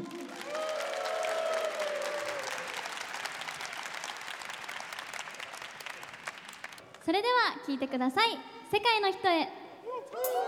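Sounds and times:
audience applause: 0.1 - 7.0
speech: 7.1 - 10.3.

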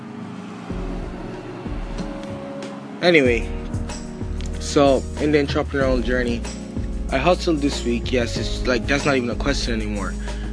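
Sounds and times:
car passing by: 0.0 - 5.7
speech: 3.0 - 3.6, 4.7 - 10.3.

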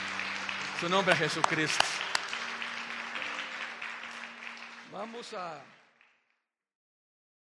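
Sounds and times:
audience applause: 0.0 - 6.2
speech: 0.8 - 2.1, 5.0 - 5.8.

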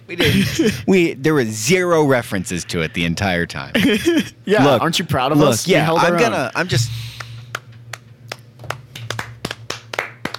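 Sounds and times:
low steady hum: 0.0 - 10.3
speech: 0.1 - 7.1
sharp hand claps from a single person: 7.2 - 10.3.

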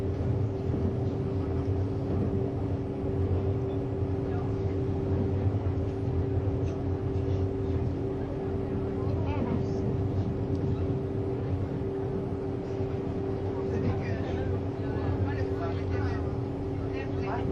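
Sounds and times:
Swiss RABDe500 ICN tilting train running on the Gotthard line: 0.0 - 17.5.

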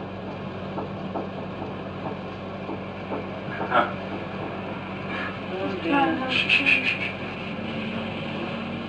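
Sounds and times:
steady low hum: 0.0 - 8.8
rapid repeated knocking: 0.1 - 5.0.

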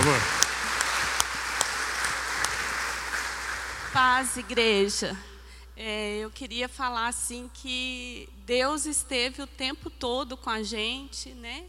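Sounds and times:
audience applause: 0.0 - 4.9
speech: 3.9 - 11.6.

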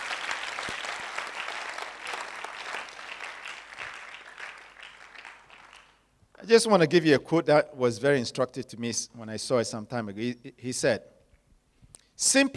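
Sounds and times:
audience clapping: 0.0 - 6.1
speech: 6.5 - 11.2, 12.2 - 12.5.

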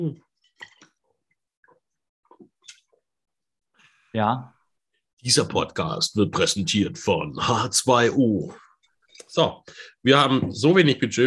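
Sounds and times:
speech: 0.0 - 0.3, 4.2 - 4.6, 5.2 - 8.6, 9.3 - 11.2
person sipping a drink: 0.3 - 3.0
slurping and swallowing: 0.4 - 3.0.

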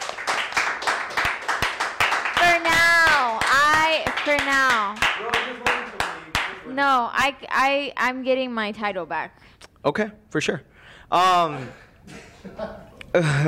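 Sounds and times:
applause, people clapping: 0.0 - 6.7
speech: 6.8 - 13.4.

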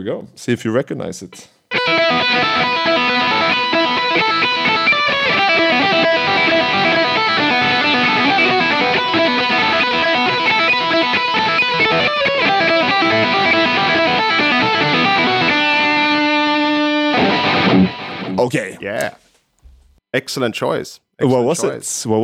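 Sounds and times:
speech: 0.0 - 3.0, 4.2 - 4.9, 17.7 - 19.2, 20.1 - 22.2
heavy metal distorted electric guitar riff: 1.7 - 18.4.

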